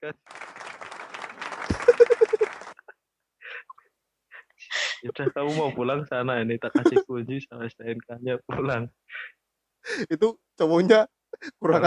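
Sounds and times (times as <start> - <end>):
speech: 0.0 - 0.5, 5.2 - 9.2, 10.0 - 11.8
hand clapping applause: 0.0 - 2.9
laughter: 1.6 - 2.9, 5.1 - 5.8, 6.7 - 7.1.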